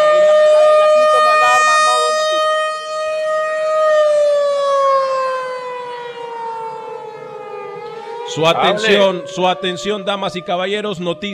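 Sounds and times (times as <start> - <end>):
alarm siren wailing: 0.0 - 11.3
speech: 8.4 - 11.3.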